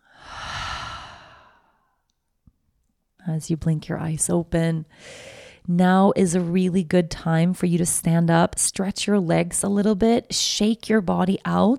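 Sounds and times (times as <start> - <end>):
huge breathy sigh at the close of a guided meditation: 0.0 - 1.8
speech: 3.3 - 11.7.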